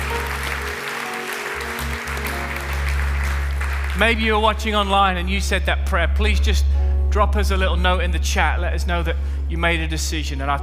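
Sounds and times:
church congregation applauding people who said a prayer: 0.0s - 4.8s
speech: 4.0s - 10.6s.

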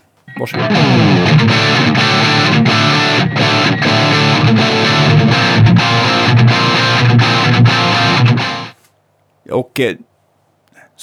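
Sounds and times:
heavily distorted electric guitar chugging riff through overdriven amp recorded with Shure mic: 0.3s - 8.8s
speech: 0.4s - 2.0s, 9.5s - 10.1s.

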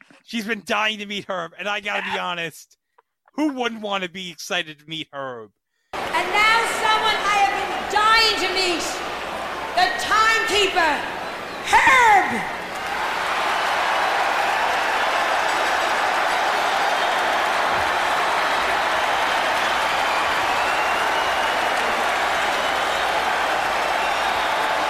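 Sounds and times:
speech: 0.2s - 2.8s, 3.4s - 9.1s, 9.8s - 12.6s
arena crowd roaring and cheering: 5.9s - 24.8s.

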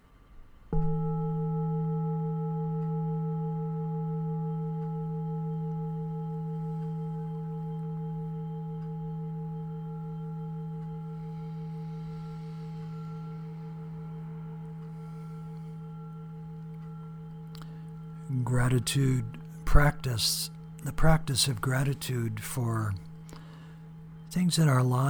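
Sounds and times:
meditation bell ringing: 0.7s - 25.0s
speech: 18.5s - 23.1s, 24.4s - 25.0s.

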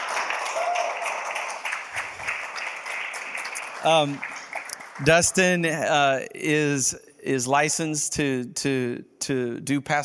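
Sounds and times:
crowd clapping: 0.0s - 5.8s
high-pitched whoop or cheer: 0.4s - 1.4s
speech: 3.8s - 4.3s, 5.0s - 10.0s.

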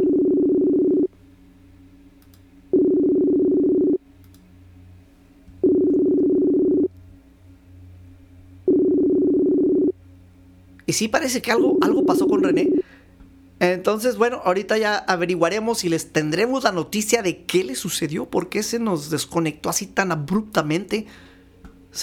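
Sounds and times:
telephone ringback tone while dialing: 0.0s - 1.1s, 2.7s - 4.0s, 5.6s - 6.9s, 8.7s - 9.9s, 11.5s - 12.8s
speech: 10.9s - 12.9s, 13.6s - 21.3s.

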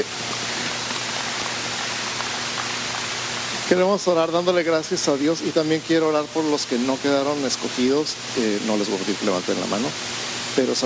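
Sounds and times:
speech: 0.0s - 0.3s, 3.7s - 10.8s
crowd clapping: 0.3s - 3.1s.

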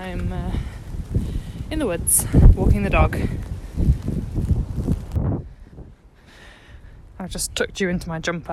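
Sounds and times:
gusty wind in snowy woods buffeting the microphone: 0.0s - 8.5s
speech: 0.1s - 3.9s, 7.2s - 8.5s.

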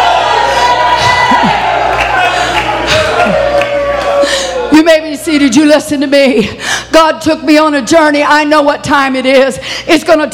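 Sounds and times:
church congregation shouting and cheering during a service: 0.0s - 5.8s
speech: 5.2s - 10.3s.

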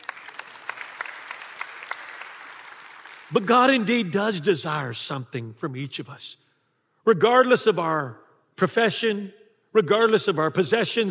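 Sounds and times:
audience applause: 0.0s - 3.8s
speech: 3.3s - 6.4s, 7.1s - 11.0s.

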